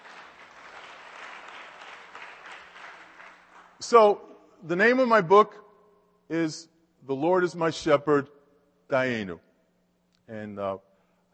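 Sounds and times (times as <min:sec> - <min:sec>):
audience applause: 0:00.0 - 0:03.8
speech: 0:03.8 - 0:05.6, 0:06.3 - 0:09.5, 0:10.3 - 0:10.9.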